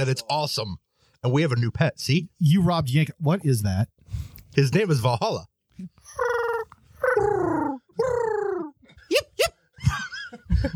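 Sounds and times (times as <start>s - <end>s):
speech: 0.0s - 6.4s, 7.2s - 8.3s
pigeon cooing: 6.0s - 8.8s.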